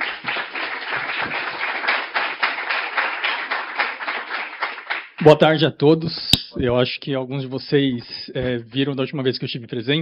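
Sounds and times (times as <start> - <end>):
group applauding: 0.0 - 5.5
speech: 5.2 - 10.0.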